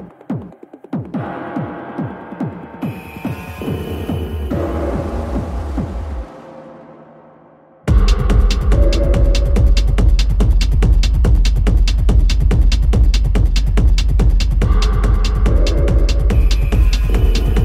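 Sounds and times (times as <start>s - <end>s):
industrial techno noise music: 0.0s - 17.6s.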